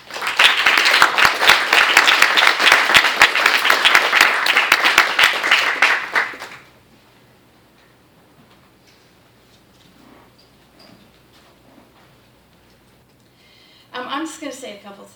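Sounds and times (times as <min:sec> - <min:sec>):
audience clapping at a lecture: 0:00.0 - 0:06.8
speech: 0:14.6 - 0:15.1.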